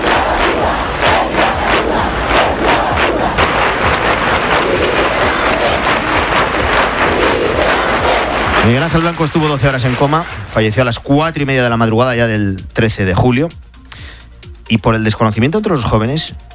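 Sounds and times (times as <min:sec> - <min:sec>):
crowd shouting and chanting at protest vigil: 0:00.0 - 0:10.9
speech: 0:08.7 - 0:13.6, 0:14.7 - 0:16.5.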